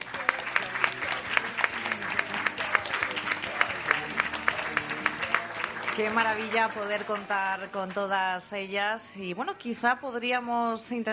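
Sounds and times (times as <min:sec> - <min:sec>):
audience applause: 0:00.0 - 0:08.6
speech: 0:06.0 - 0:11.1.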